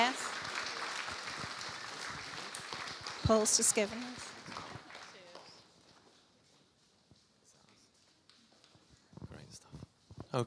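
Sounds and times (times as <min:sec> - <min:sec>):
audience applause: 0:00.0 - 0:05.7
speech: 0:03.3 - 0:04.2.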